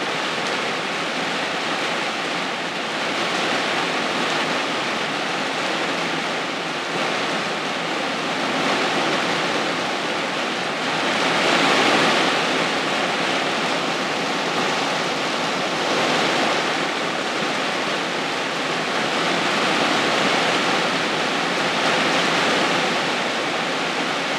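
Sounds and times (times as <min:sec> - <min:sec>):
rain on a mobile home: 0:00.0 - 0:24.3.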